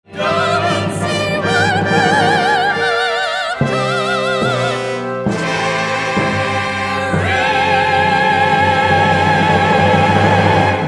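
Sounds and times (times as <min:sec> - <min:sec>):
live solo with orchestra: 0:00.1 - 0:10.8.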